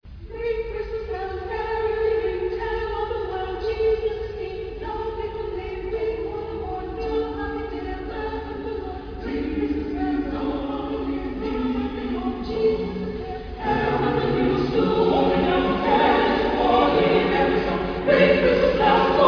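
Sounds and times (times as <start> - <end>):
choir singing: 0.4 - 19.2.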